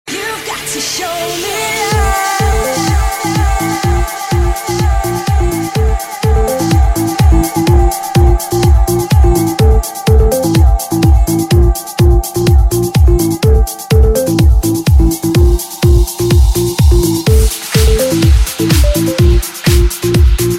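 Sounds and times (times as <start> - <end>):
Ibiza music: 0.1 - 20.5.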